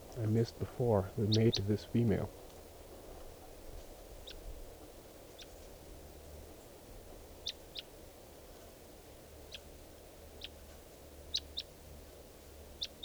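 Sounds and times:
steady low rumble: 0.0 - 2.3
wild bird chirping: 0.0 - 2.3
speech: 0.2 - 2.4.

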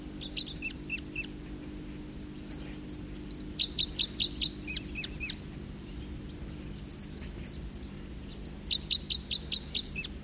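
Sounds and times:
songbird song flight: 0.0 - 10.2.

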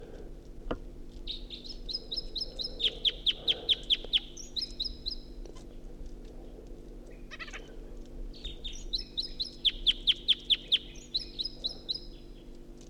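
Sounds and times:
wild bird singing: 1.3 - 5.2, 8.4 - 12.2.

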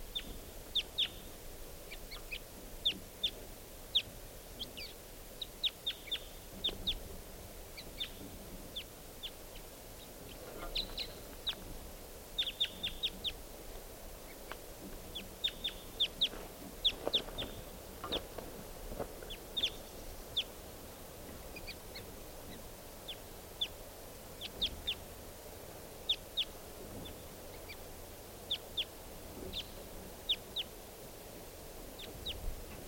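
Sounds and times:
lone wild bird chirping: 0.0 - 7.1, 7.7 - 11.6, 12.4 - 13.4, 15.1 - 18.3, 19.2 - 20.6, 21.5 - 25.1, 26.0 - 30.8, 31.9 - 32.5
low rumble: 0.0 - 32.8.

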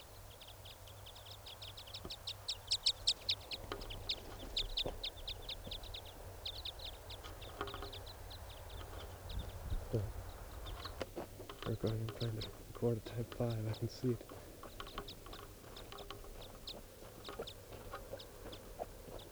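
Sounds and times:
foraging birds chirping: 0.0 - 19.2
speech: 11.8 - 14.4.

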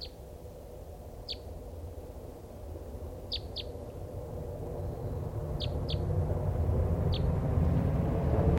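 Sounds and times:
low rumble: 0.0 - 8.5
high bird call notes of a flock: 3.3 - 3.8, 5.6 - 6.1, 7.1 - 7.3.

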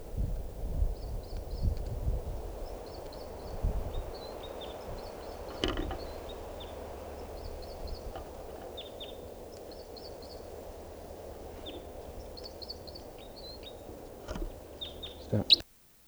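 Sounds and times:
breezy rustling: 0.0 - 15.7
female bird calling: 2.7 - 15.6
soft thumps: 5.4 - 15.6.

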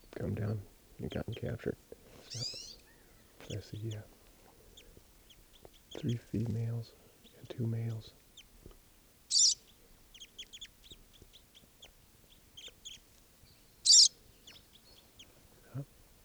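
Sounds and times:
crossbills calling: 0.0 - 16.2
speech: 0.2 - 2.6, 3.5 - 4.2, 6.0 - 8.2.

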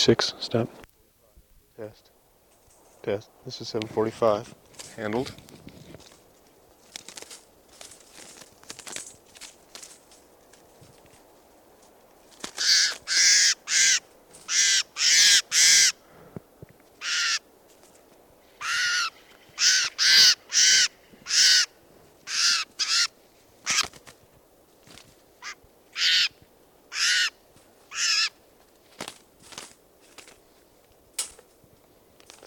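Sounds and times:
speech: 0.0 - 0.8, 1.8 - 2.1, 3.0 - 5.6
faint bird chatter: 12.5 - 16.0, 16.9 - 17.6, 18.4 - 24.0, 25.4 - 28.4
crow cawing in harsh bursts: 12.5 - 16.2, 17.0 - 17.5, 18.6 - 23.9, 25.4 - 28.4.

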